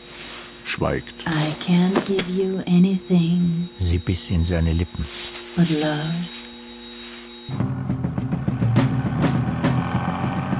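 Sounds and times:
speech: 0:00.8 - 0:06.4, 0:07.5 - 0:07.7
car engine running while driving: 0:07.6 - 0:10.5.

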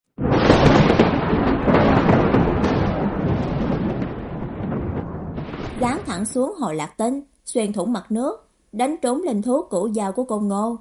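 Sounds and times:
thunderclap from a giant lightning strike over Thái Lăng Cát: 0:00.2 - 0:06.5
speech: 0:05.8 - 0:10.8.

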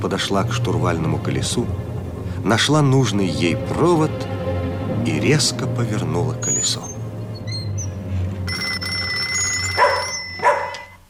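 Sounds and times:
speech: 0:00.0 - 0:04.3, 0:05.0 - 0:07.0
low hum: 0:00.0 - 0:10.9
telephone bell ringing: 0:08.5 - 0:11.0
dog barking: 0:09.8 - 0:11.0.

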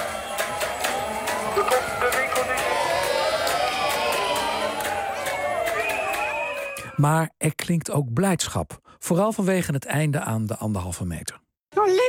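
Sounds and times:
steady rhythmic banging or clapping at a protest: 0:00.0 - 0:06.3
hundreds of demonstrators shouting outside a press conference: 0:00.0 - 0:06.9
shrill whistles or horns at a protest: 0:01.4 - 0:07.0
speech: 0:07.0 - 0:12.0.

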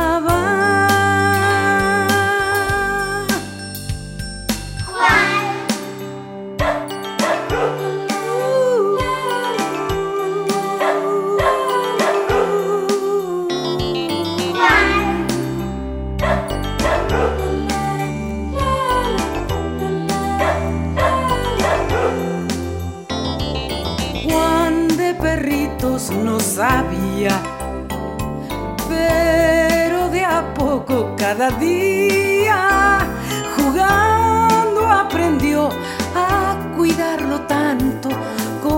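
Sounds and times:
steady tinkling musical backdrop: 0:00.1 - 0:30.7, 0:31.4 - 0:38.7
dog barking and yipping: 0:05.0 - 0:05.7, 0:06.6 - 0:07.9, 0:10.8 - 0:12.8, 0:14.5 - 0:15.3, 0:16.2 - 0:17.6, 0:20.4 - 0:22.6.

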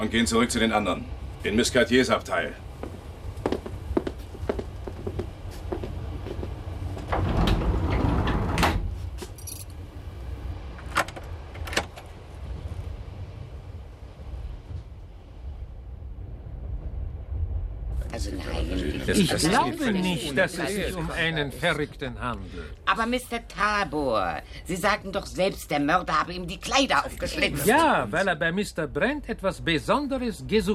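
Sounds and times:
speech: 0:00.0 - 0:02.7, 0:19.3 - 0:30.7
low rumbling background: 0:00.0 - 0:25.1
train compartment door being closed: 0:07.0 - 0:09.1.

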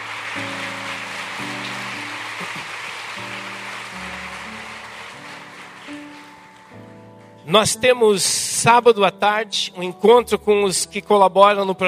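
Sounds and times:
audience applause: 0:00.0 - 0:06.8
soft sustained keyboard chords: 0:00.0 - 0:11.8
speech: 0:07.5 - 0:11.8.

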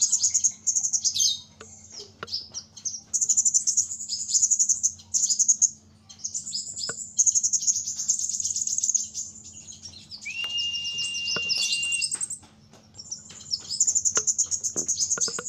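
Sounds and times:
small bird giving very high fast trills and thin chirps: 0:00.0 - 0:15.4.

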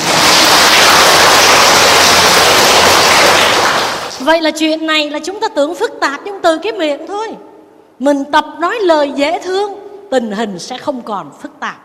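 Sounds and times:
crowd applause: 0:00.0 - 0:04.2
speech: 0:04.3 - 0:11.8.

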